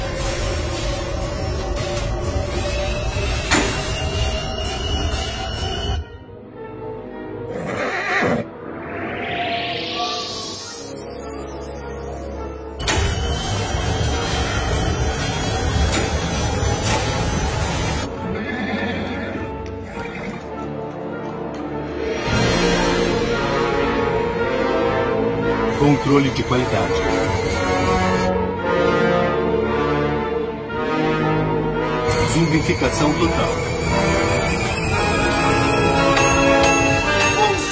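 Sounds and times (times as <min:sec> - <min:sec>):
energetic music: 0:00.0 - 0:37.7
horse whinnying: 0:07.5 - 0:08.5, 0:18.2 - 0:20.7
speech: 0:26.4 - 0:27.1, 0:32.6 - 0:34.2.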